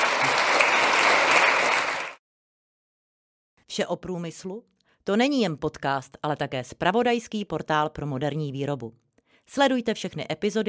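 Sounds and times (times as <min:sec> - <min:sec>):
audience applause: 0:00.0 - 0:02.2
speech: 0:03.8 - 0:10.6.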